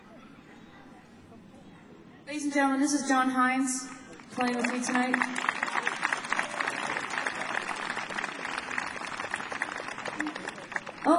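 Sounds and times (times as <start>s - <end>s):
speech: 2.3s - 5.5s
audience clapping: 4.1s - 11.1s.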